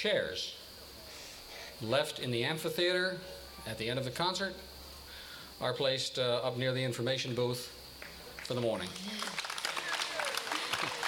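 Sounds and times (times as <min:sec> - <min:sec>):
speech: 0:00.0 - 0:00.6, 0:01.8 - 0:04.7, 0:05.6 - 0:07.8, 0:08.5 - 0:09.3
audience applause in outdoor amphitheater: 0:08.0 - 0:11.0.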